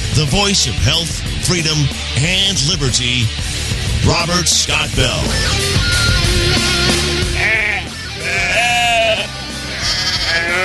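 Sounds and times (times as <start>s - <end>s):
speech: 0.2s - 6.0s
sheep and lambs bleating: 7.2s - 10.6s.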